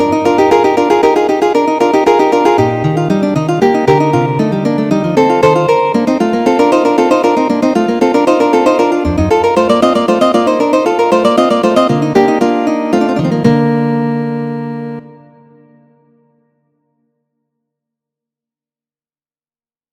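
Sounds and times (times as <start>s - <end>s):
fugue: 0.0s - 15.9s.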